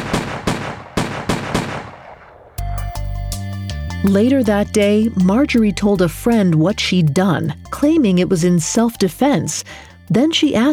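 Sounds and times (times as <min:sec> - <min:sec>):
revolver gunshots fired at a sleeping man: 0:00.0 - 0:02.6
music: 0:02.6 - 0:10.7
speech: 0:04.0 - 0:10.7.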